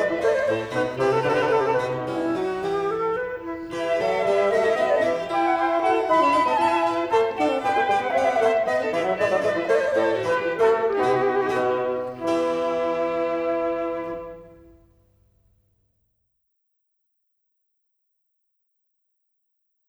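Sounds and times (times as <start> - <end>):
quartet piece in E minor: 0.0 - 14.8.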